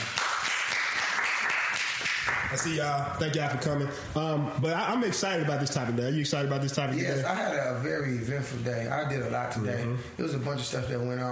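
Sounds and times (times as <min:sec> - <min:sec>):
audience applauding: 0:00.0 - 0:02.8
speech: 0:02.5 - 0:11.3.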